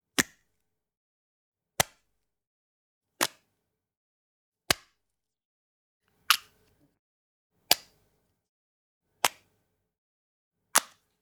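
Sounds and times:
marker pen opening and closing: 6.3 - 6.5, 10.8 - 11.0.

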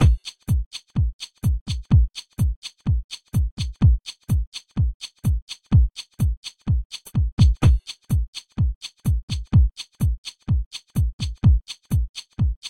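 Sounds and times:
drums: 0.0 - 12.6.

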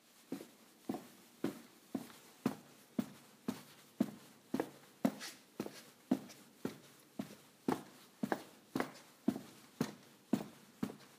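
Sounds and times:
footsteps walking on a concrete floor: 0.2 - 11.1.

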